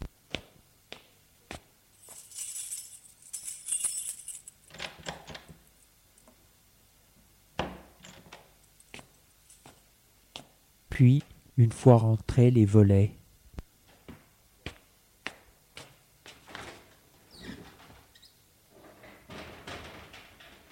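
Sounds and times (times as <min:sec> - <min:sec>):
keys jangling: 0:02.0 - 0:04.8
speech: 0:11.0 - 0:13.2.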